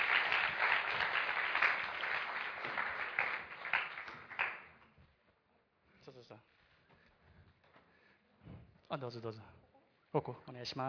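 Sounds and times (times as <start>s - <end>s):
audience applause: 0.0s - 4.8s
speech: 8.9s - 10.8s.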